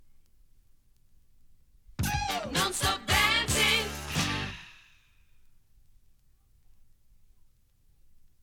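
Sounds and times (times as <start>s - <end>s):
maxi jingle single: 2.0s - 4.7s.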